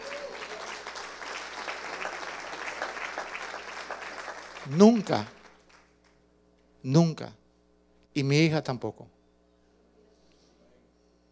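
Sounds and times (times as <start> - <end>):
audience applause: 0.0 - 5.9
speech: 4.7 - 5.4, 6.8 - 7.4, 8.2 - 9.2.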